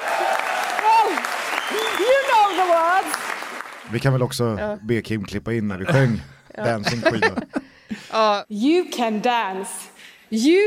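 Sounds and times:
large crowd cheering: 0.0 - 3.9
applause: 0.0 - 4.0
speech: 3.9 - 10.6
laughter: 5.8 - 8.1.

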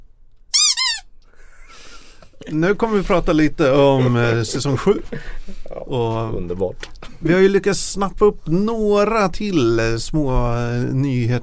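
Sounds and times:
rubber squeaks from a squeaky toy shark: 0.5 - 1.1
laughter: 1.4 - 6.4
speech: 2.4 - 11.4.

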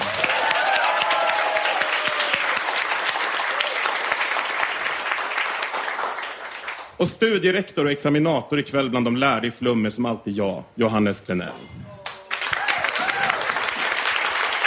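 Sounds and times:
warm audience applause: 0.0 - 6.9, 12.0 - 14.6
speech: 7.0 - 11.8.

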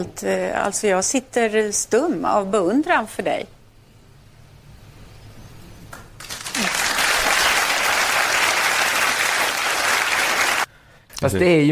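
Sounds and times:
speech: 0.0 - 3.6, 11.2 - 11.7
studio audience applause: 6.2 - 10.7.

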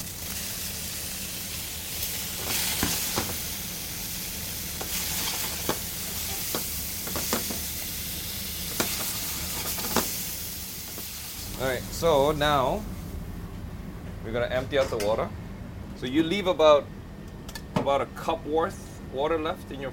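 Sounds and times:
steak sizzling in a hot pan: 0.0 - 11.5
speech: 11.7 - 12.9, 14.3 - 15.4, 16.0 - 16.9, 17.8 - 19.9.

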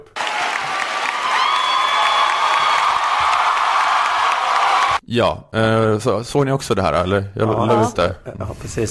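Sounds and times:
crowd cheering: 0.1 - 5.0
speech: 5.1 - 8.8.

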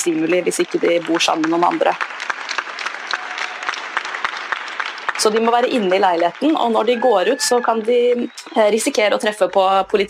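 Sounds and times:
speech: 0.0 - 2.3, 5.2 - 10.0
people clapping on their balconies: 0.0 - 10.0.

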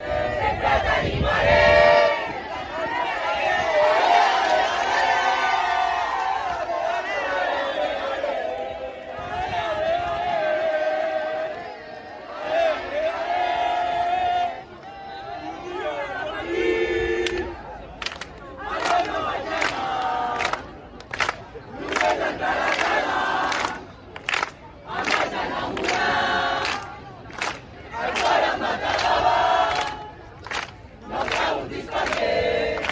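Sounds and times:
football fans chanting awaiting team bus: 0.0 - 32.8.

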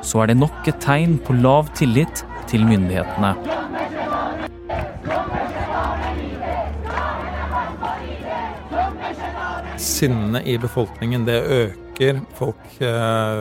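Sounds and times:
speech: 0.0 - 3.6, 9.8 - 13.4
large crowd of protesters chanting slogans: 0.0 - 13.4.

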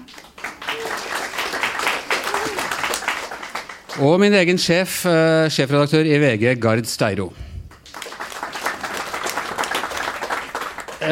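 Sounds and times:
audience applause: 0.0 - 4.3, 7.7 - 11.0
speech: 4.0 - 7.5.

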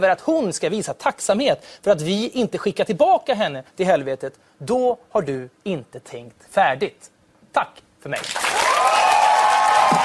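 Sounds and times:
speech: 0.0 - 8.6
audience applause: 8.2 - 10.0
faint cheer: 8.5 - 10.0.

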